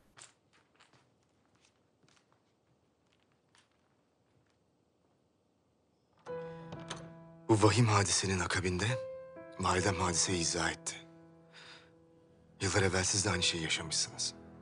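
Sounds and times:
soft footsteps of guards leaving a throne room: 0.0s - 5.4s
speech: 7.5s - 11.0s, 12.6s - 14.4s.

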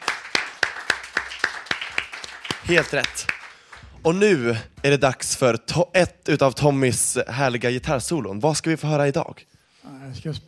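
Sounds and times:
applause: 0.0s - 4.0s
speech: 2.7s - 3.3s, 4.0s - 10.4s.

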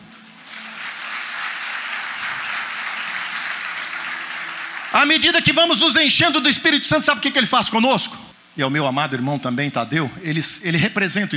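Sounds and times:
audience applauding: 0.0s - 6.0s
speech: 5.0s - 11.3s.

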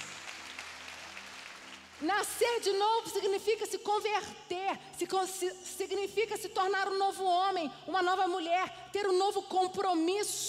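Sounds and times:
audience clapping: 0.0s - 2.4s
speech: 2.0s - 10.4s.

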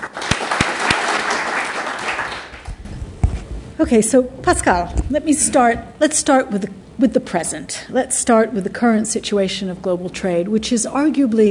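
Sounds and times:
audience applause at a memorial lecture: 0.0s - 2.8s
speech: 3.8s - 11.4s.

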